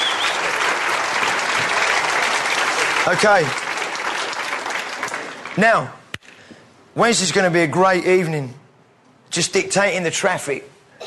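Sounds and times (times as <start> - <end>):
audience applause at a church gathering: 0.0 - 6.0
speech: 3.1 - 3.6, 5.6 - 6.0, 7.0 - 8.6, 9.3 - 11.0.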